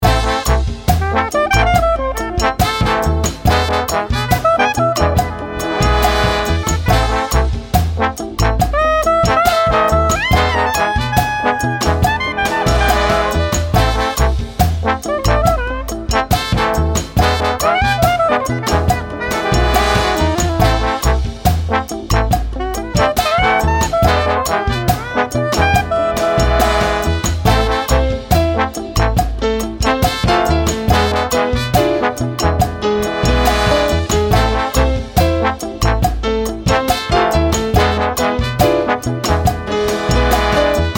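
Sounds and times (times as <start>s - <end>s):
chill Latin music: 0.0s - 40.9s.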